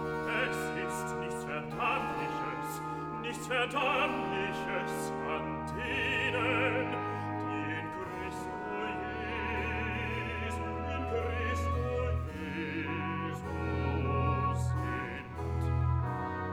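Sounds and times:
person singing recitative: 0.1s - 16.3s.

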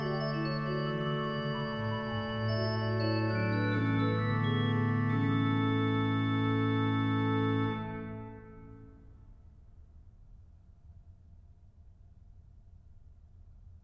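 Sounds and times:
organ chorale prelude: 0.0s - 9.0s.

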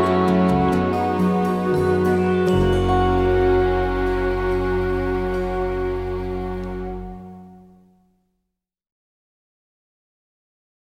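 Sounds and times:
pan flute melody: 0.0s - 7.9s.

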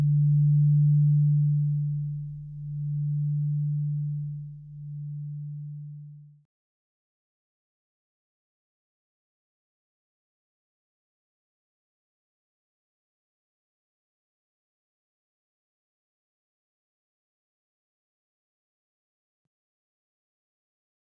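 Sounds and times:
singing bowls: 0.0s - 6.2s.

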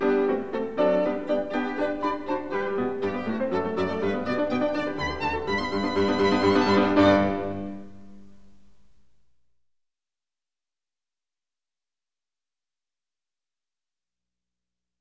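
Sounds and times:
violin: 0.0s - 8.5s
piano: 0.0s - 9.2s.

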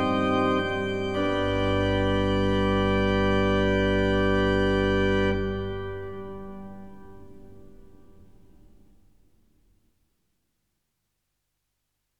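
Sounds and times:
organ playing chorale preludes: 0.0s - 8.2s.

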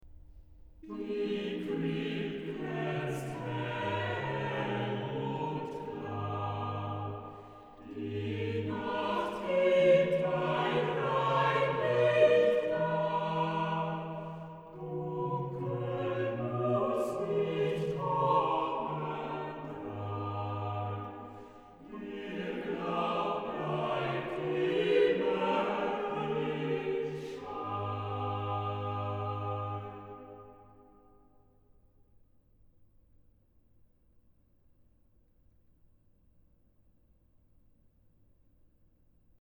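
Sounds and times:
organ chorale: 0.8s - 30.9s.

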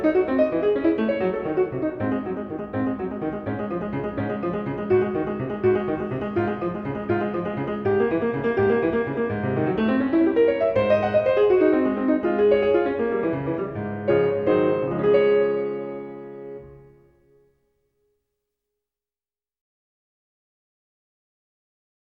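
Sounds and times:
prelude: 0.0s - 17.4s.

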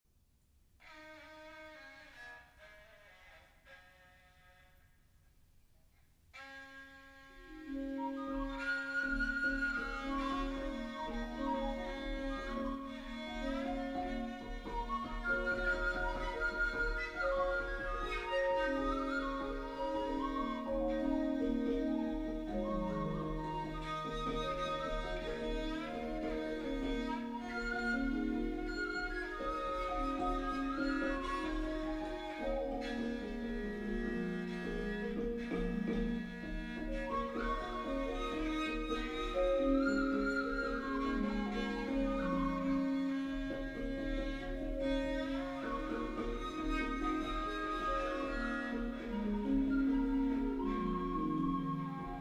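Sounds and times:
Javanese gamelan music: 7.4s - 52.1s.

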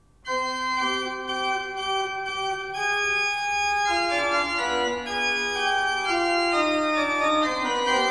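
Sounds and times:
organ fugue in C minor: 0.3s - 8.1s.

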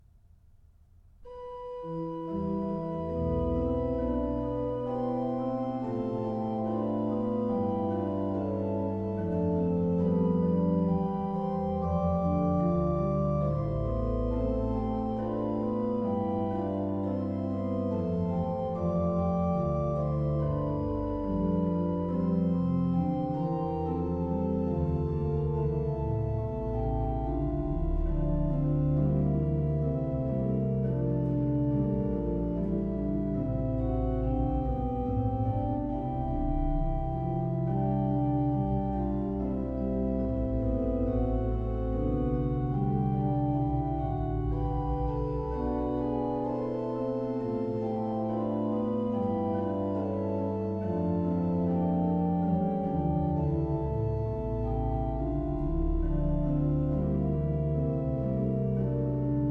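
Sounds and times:
organ chorale prelude: 1.2s - 59.5s.

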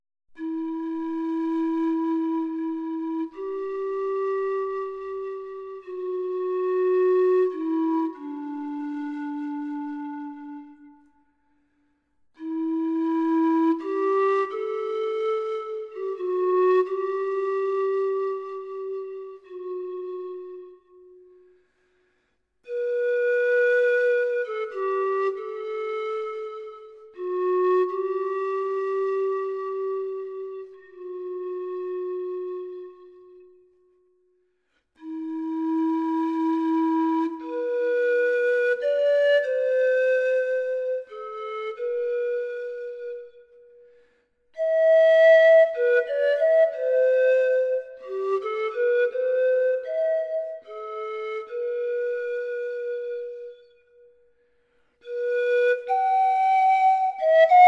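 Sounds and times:
solo pan flute meditation music: 0.3s - 57.6s.

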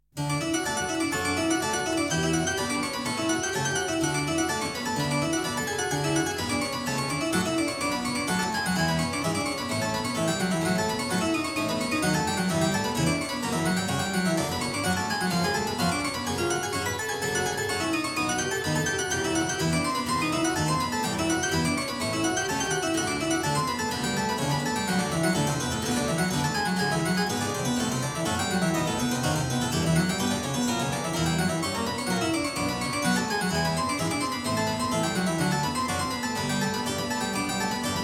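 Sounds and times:
clavier prelude: 0.2s - 38.0s.

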